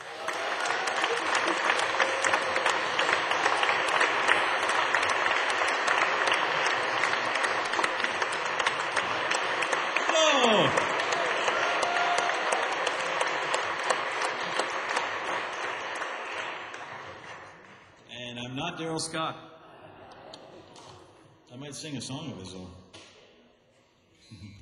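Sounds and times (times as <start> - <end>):
audience applause at Celtic Connections 2012 welcoming a performer: 0.0 - 18.0
speech: 19.0 - 19.5, 21.7 - 22.8.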